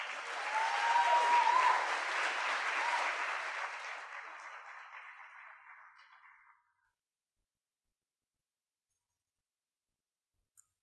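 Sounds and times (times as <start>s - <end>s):
audience standing ovation at Revival Christian Fellowship in Marietta: 0.0s - 6.9s.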